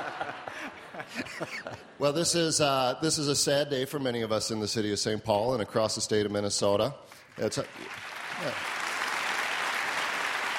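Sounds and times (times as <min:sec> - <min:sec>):
laughter: 0:00.0 - 0:02.3
speech: 0:01.1 - 0:08.8
audience clapping: 0:07.1 - 0:10.5.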